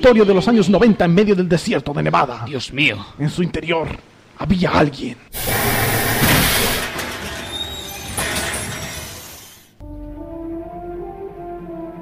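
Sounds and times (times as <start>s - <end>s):
speech: 0.0s - 5.8s
large door of a call shop sliding open: 5.4s - 9.8s.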